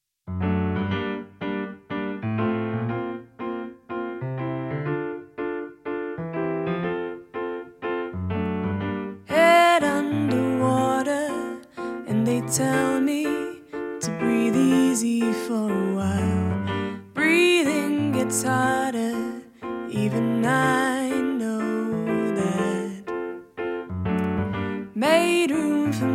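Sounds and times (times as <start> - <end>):
piano played by singer-pianist: 0.3 - 26.1
singer-pianist singing a love song: 9.2 - 23.6, 24.2 - 26.1.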